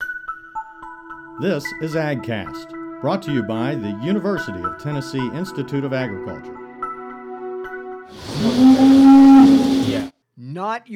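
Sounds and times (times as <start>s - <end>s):
speech: 1.4s - 6.6s, 8.4s - 10.9s
Holstein cow mooing: 8.2s - 10.1s.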